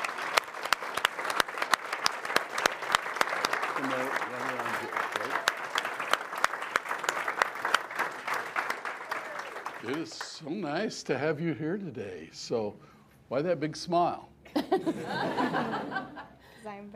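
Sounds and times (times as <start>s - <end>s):
audience applauding a volunteer called up on stage: 0.0s - 10.6s
speech: 9.8s - 16.9s
laughter: 14.5s - 16.4s.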